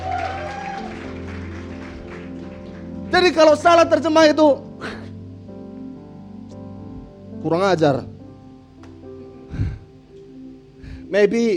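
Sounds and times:
audience applause: 0.0s - 3.7s
low musical hum with held tones: 0.0s - 11.5s
speech: 3.1s - 5.0s, 7.4s - 8.1s, 11.1s - 11.5s.

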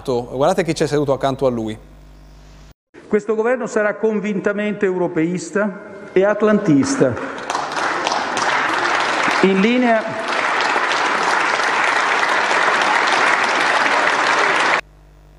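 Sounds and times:
speech: 0.0s - 1.9s, 3.1s - 7.4s, 9.4s - 10.2s
applause in the Senate: 7.1s - 14.9s.

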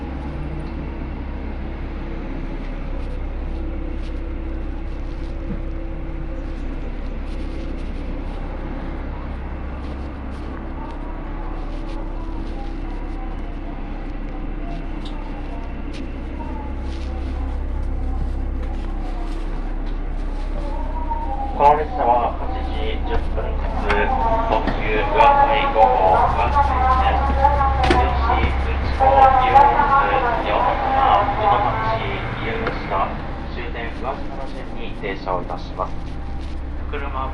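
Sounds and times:
Yosan Line limited express Uwakai train rumble: 0.0s - 37.3s
voices talking aboard train: 8.8s - 37.3s.

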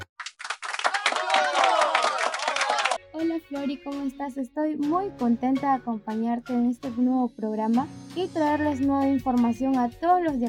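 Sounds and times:
small studio crew applauding: 0.2s - 3.0s
people cheering: 0.3s - 3.0s
speech: 3.6s - 10.4s.

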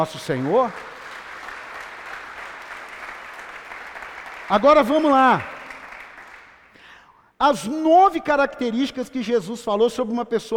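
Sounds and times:
speech: 0.0s - 0.9s, 4.5s - 5.5s, 7.4s - 10.5s
audience applause: 0.0s - 6.8s.

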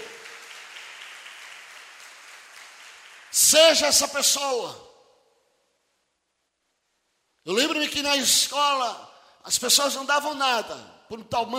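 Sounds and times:
audience applause: 0.0s - 3.5s
speech: 3.3s - 4.9s, 7.5s - 11.5s.

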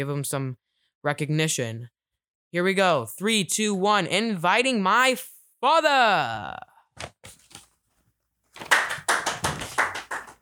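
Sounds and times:
speech: 0.0s - 7.4s
person clapping: 8.6s - 10.4s.

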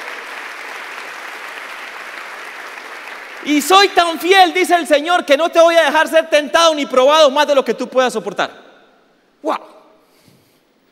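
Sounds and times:
audience applause: 0.0s - 3.8s
speech: 3.4s - 8.6s, 9.4s - 9.8s.

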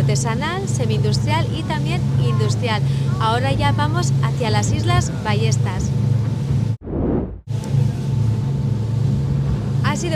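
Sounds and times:
speedboat engine running fast: 0.0s - 6.8s, 7.5s - 10.1s
speech: 0.1s - 6.2s
softer whooshing: 6.8s - 7.5s.

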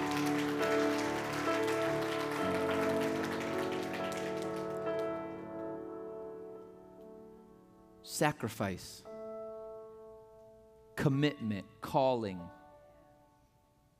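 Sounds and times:
audience clapping hands: 0.0s - 5.5s
speech: 8.2s - 9.1s, 11.0s - 12.6s.

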